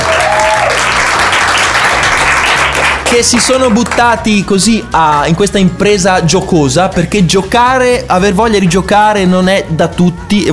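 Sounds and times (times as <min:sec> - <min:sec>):
audience applauding families, parents and children: 0:00.0 - 0:04.4
speech: 0:03.1 - 0:10.5.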